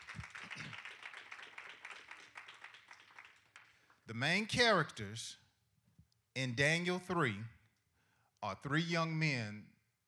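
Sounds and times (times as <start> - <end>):
hand clapping: 0.0 - 4.0
speech: 4.1 - 5.4, 6.4 - 7.6, 8.4 - 9.7.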